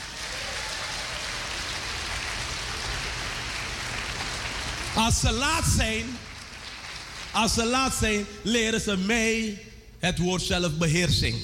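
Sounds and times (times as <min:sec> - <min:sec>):
many hands clapping: 0:00.0 - 0:08.1
speech: 0:05.0 - 0:06.2, 0:07.4 - 0:11.4.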